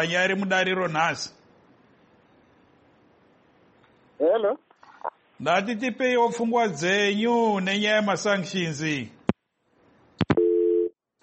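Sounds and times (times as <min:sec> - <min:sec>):
speech: 0:00.0 - 0:01.4, 0:04.2 - 0:04.7, 0:05.4 - 0:09.2
telephone busy tone after a caller's line drops: 0:10.3 - 0:10.9.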